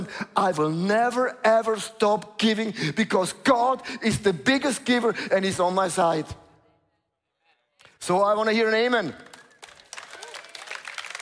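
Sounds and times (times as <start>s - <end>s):
speech: 0.1s - 6.4s, 8.0s - 9.3s
audience applause: 9.2s - 11.2s.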